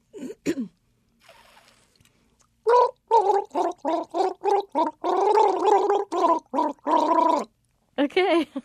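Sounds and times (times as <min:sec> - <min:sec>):
tune gargled on a water bottle: 0:02.6 - 0:07.6.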